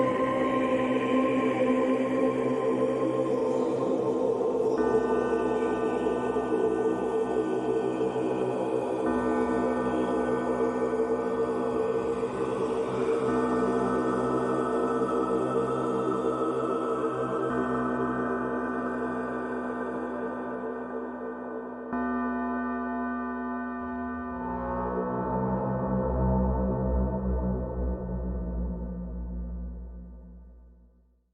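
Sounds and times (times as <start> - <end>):
dark ambient horror soundscape: 0.0 - 30.8.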